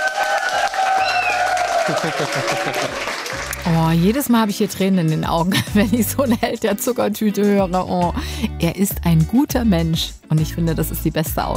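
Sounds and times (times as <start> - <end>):
audience applause: 0.0 - 3.8
laughter: 1.3 - 3.6, 5.4 - 6.4
speech: 1.9 - 11.5.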